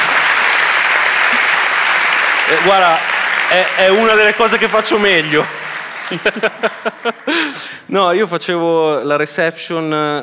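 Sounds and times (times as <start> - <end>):
audience applause: 0.0 - 7.9
speech: 2.5 - 10.2
laughter: 5.2 - 7.9.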